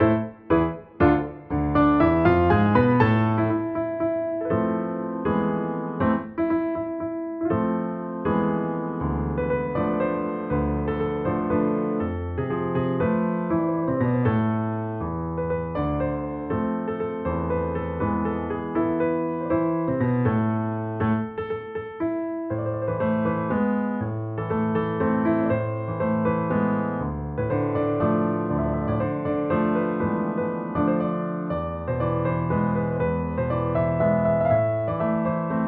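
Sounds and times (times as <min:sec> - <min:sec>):
piano: 0:00.0 - 0:35.6.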